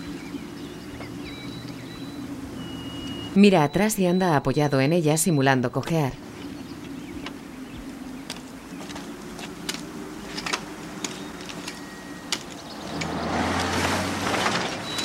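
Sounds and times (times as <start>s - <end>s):
low hum: 0.0s - 15.0s
speech: 3.4s - 6.3s
car passing by: 10.8s - 15.0s.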